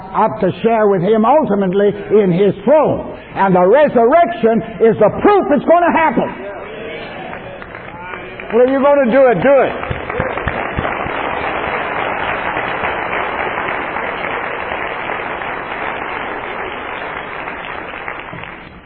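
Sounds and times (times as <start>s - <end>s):
speech: 0.1s - 6.6s, 8.5s - 9.9s
audience applause: 6.9s - 18.8s.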